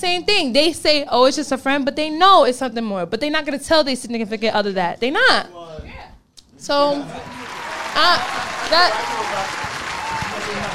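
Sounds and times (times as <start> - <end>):
speech: 0.0 - 5.9, 6.6 - 9.7
audience applause: 7.1 - 10.7.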